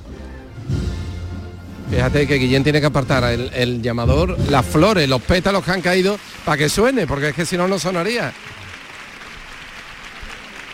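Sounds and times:
speech: 1.9 - 8.5
applause from balconies, terraces and the street for a Virgen de los Dolores procession: 4.4 - 10.7.

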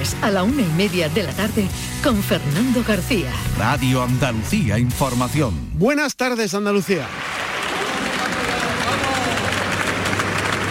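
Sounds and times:
speech: 0.0 - 7.3
crowd applause welcoming arrival at train station: 7.0 - 10.6.

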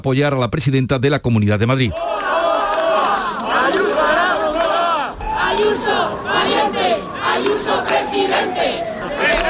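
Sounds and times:
speech: 0.0 - 2.3
protest crowd chanting slogans outside party headquarters: 2.0 - 9.4.

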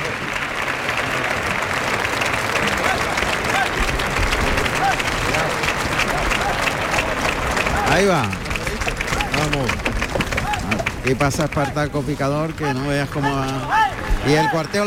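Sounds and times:
bullring crowd ovation applause: 0.0 - 14.8
speech: 8.0 - 8.4, 11.1 - 14.8.

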